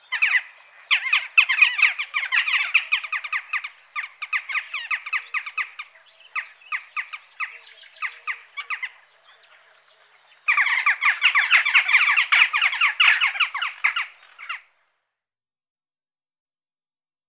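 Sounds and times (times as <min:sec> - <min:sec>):
western jackdaw sharp harsh calls: 0:00.0 - 0:09.0, 0:10.5 - 0:14.7.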